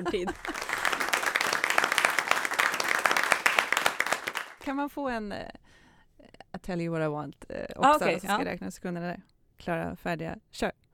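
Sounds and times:
speech: 0.0 - 0.6, 4.7 - 5.6, 6.6 - 10.8
laughter: 0.0 - 1.0
applause sound effect: 0.4 - 4.6.

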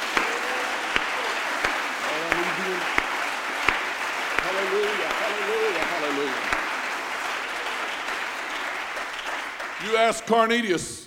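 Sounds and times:
audience clapping hands: 0.0 - 10.8
speech: 9.9 - 11.0.

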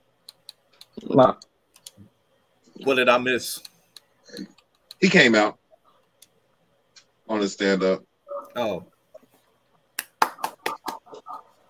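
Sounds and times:
speech: 1.0 - 1.5, 2.8 - 3.7, 4.3 - 5.6, 7.3 - 8.9
single person clapping: 10.0 - 11.0.

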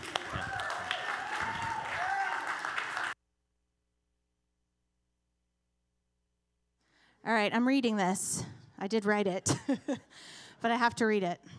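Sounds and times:
audience clapping: 0.0 - 3.2
speech: 7.3 - 11.5.

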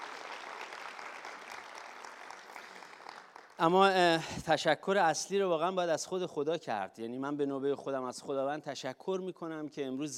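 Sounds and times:
audience clapping: 0.0 - 3.9
speech: 3.6 - 10.1.

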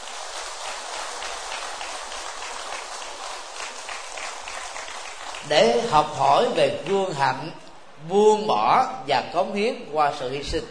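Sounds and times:
crowd clapping: 0.0 - 7.2
speech: 5.4 - 10.6.

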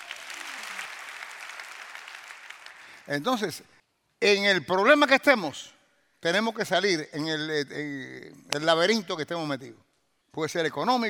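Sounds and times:
crowd clapping: 0.0 - 3.1
speech: 3.1 - 11.0.

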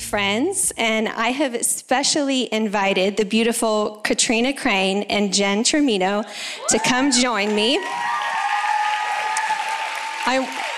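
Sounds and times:
speech: 0.1 - 8.1, 10.3 - 10.6
audience applause: 6.6 - 10.7
voiced cheer: 6.6 - 10.7.

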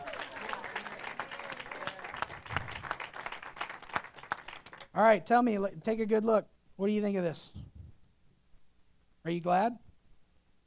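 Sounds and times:
audience applause: 0.0 - 4.9
speech: 5.0 - 7.6, 9.2 - 9.8.

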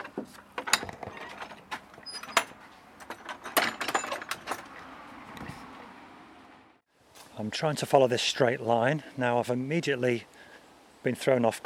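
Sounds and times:
back garden gate latch and wood rattling: 0.6 - 4.8
speech: 7.4 - 10.3, 11.0 - 11.6.

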